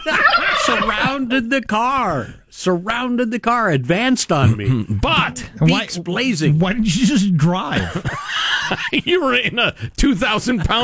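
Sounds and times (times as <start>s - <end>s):
turkeys gobbling: 0.0s - 1.3s
laughter: 0.0s - 1.4s, 4.3s - 5.6s, 7.0s - 10.8s
speech: 1.3s - 10.8s.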